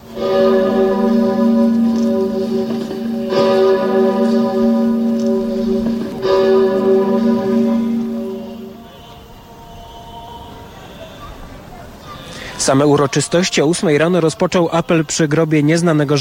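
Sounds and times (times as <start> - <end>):
large church bell tolling: 0.0 - 9.5
speech: 12.7 - 16.2.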